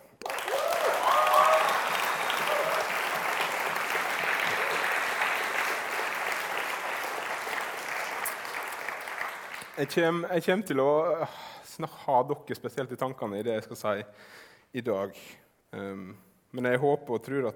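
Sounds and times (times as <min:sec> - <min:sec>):
audience applause: 0:00.1 - 0:10.0
speech: 0:09.8 - 0:17.5.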